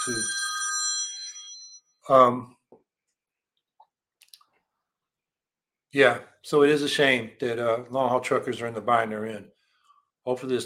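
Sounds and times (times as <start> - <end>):
speech: 0.0 - 0.4, 2.1 - 2.6, 6.0 - 9.6, 10.3 - 10.6
phone ringing with electronic chime: 0.0 - 2.2.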